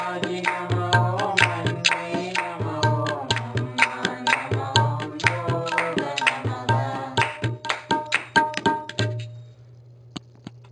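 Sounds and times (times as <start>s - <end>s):
chorus singing a bhajan devotional song: 0.0s - 8.3s.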